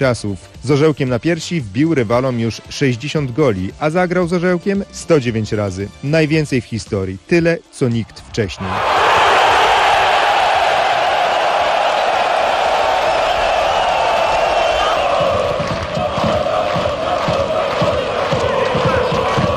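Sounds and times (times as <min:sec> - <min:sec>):
speech: 0:00.0 - 0:09.0
stadium crowd in Riga cheering after a goal in a Poland–Latvia football match: 0:08.5 - 0:19.5
rhythmic clapping of football crowd: 0:11.2 - 0:19.5.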